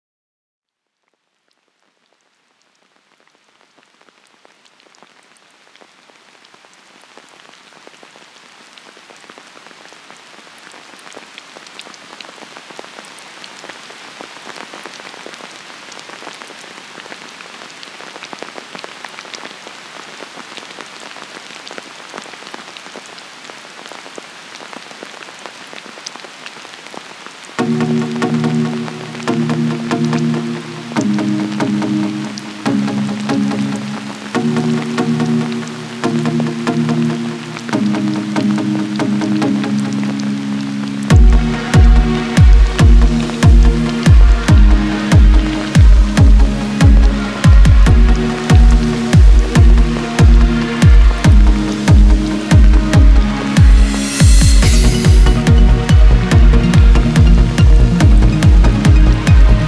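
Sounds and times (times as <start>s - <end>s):
rain trance remix music: 27.6s - 59.6s.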